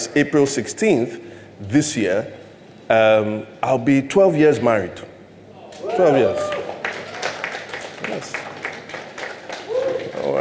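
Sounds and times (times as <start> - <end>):
speech: 0.1 - 5.1, 6.0 - 6.6
audience clapping: 6.3 - 10.4.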